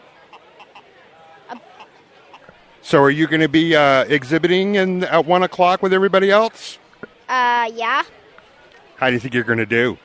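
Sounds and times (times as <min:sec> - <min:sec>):
Barred Rock hen about ten or eleven months old clucking: 0:00.3 - 0:00.9, 0:01.5 - 0:02.6
speech: 0:01.5 - 0:01.7, 0:02.9 - 0:08.2, 0:09.0 - 0:10.0.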